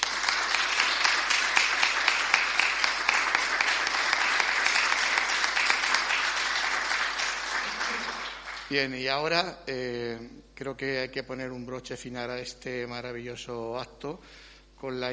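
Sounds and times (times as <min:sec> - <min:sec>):
big applause: 0:00.0 - 0:09.0
speech: 0:08.7 - 0:15.1.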